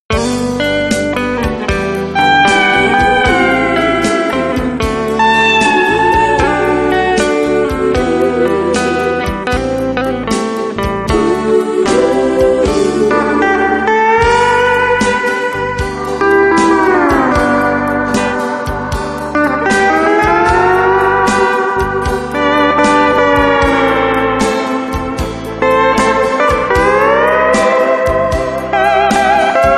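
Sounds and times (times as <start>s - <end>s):
guitar: 0.0s - 29.7s.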